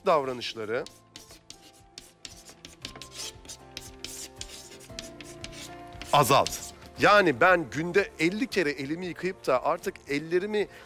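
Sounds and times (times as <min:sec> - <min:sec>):
speech: 0:00.0 - 0:01.2, 0:06.1 - 0:10.8
handwriting on a page: 0:00.8 - 0:06.9.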